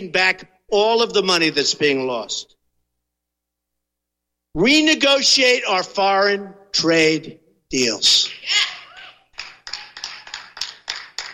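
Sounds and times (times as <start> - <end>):
speech: 0.0 - 2.5, 4.5 - 8.8
single person clapping: 9.4 - 11.3.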